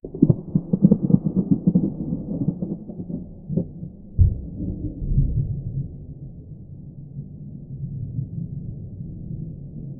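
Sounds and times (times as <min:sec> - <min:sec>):
distant rumbling thunder: 0:00.0 - 0:06.2.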